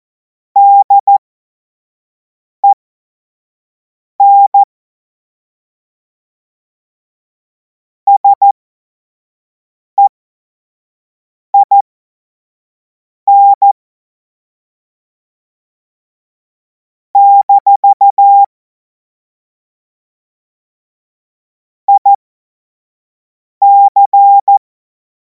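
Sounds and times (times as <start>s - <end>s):
CW Morse code beeps: 0.6s - 1.2s, 4.2s - 4.7s, 8.1s - 8.5s, 11.6s - 11.8s, 13.3s - 13.8s, 17.2s - 18.5s, 21.9s - 22.2s, 23.6s - 24.6s.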